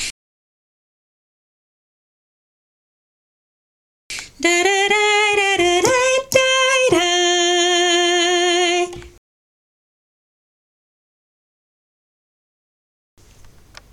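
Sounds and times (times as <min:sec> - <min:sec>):
alto voice singing chorus drill: 0:04.2 - 0:09.2.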